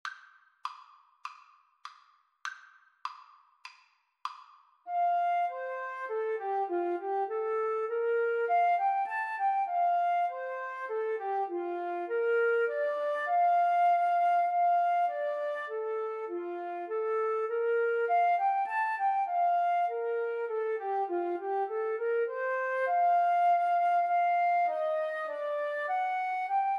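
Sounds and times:
flute duet: 4.9 - 26.7.

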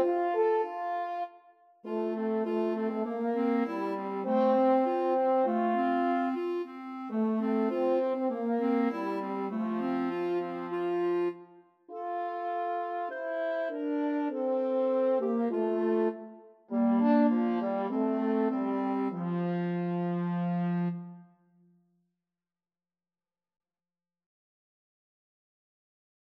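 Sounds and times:
french horn: 0.0 - 1.2, 1.9 - 21.2
clarinet: 0.0 - 21.3.

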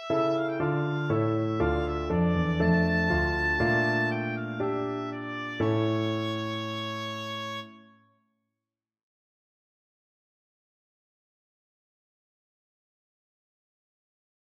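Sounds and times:
oboe sonata: 0.0 - 7.8.

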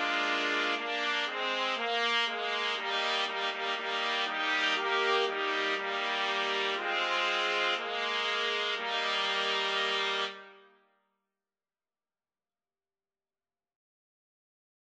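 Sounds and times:
trumpets playing: 0.0 - 10.7.

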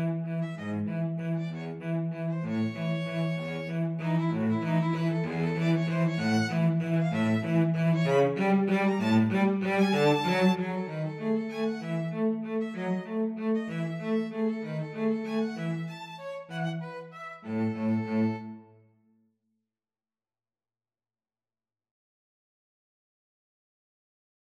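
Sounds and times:
cello in a violin and cello duet: 0.0 - 18.8
violin in a violin and cello duet: 0.0 - 18.9.

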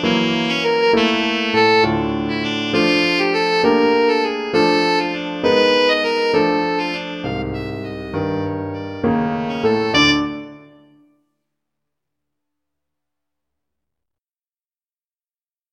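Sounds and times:
saxophone: 0.0 - 11.1.

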